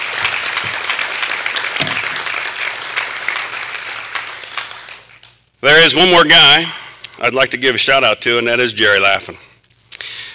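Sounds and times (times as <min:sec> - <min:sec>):
audience applause: 0:00.0 - 0:05.1
speech: 0:05.6 - 0:09.5.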